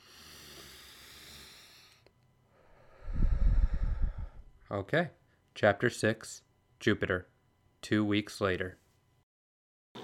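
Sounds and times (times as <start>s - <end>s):
deep breath: 0.0s - 4.6s
speech: 4.7s - 8.8s.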